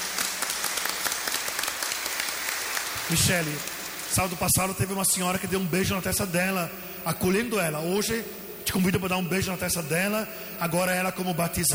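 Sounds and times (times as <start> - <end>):
audience applauding: 0.0 - 4.5
speech: 3.1 - 11.7.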